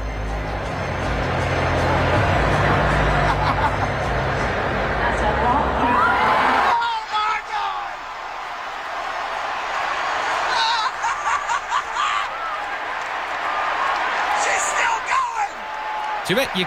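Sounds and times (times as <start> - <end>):
crowd roaring and cheering: 0.0 - 16.6
laughter: 2.8 - 4.2, 10.4 - 12.6
people shouting: 5.8 - 12.8, 13.4 - 16.6.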